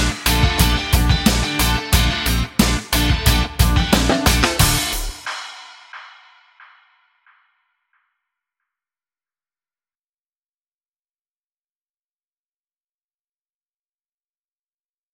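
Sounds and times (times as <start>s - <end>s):
sparkling guitar: 0.0s - 5.1s.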